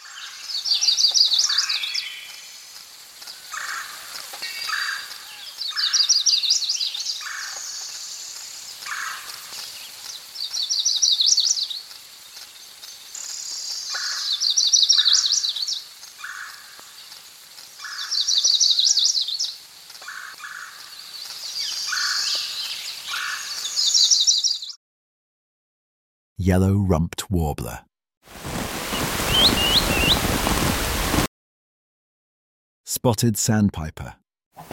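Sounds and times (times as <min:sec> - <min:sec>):
insects chirping: 0:00.0 - 0:24.5, 0:28.3 - 0:31.2
speech: 0:26.5 - 0:27.9, 0:33.0 - 0:34.2
Northern Parula song, a high buzzy rising trill: 0:28.8 - 0:30.2.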